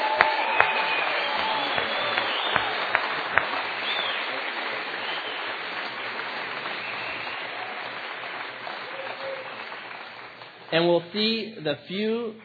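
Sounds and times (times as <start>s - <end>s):
audience applause: 0.0s - 11.0s
speech: 10.7s - 12.4s.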